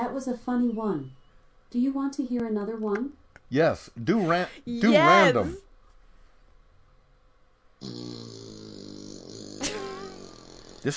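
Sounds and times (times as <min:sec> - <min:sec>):
speech: 0:00.2 - 0:05.7, 0:07.8 - 0:08.4
cheek wobbling fart sound effect: 0:07.8 - 0:10.9.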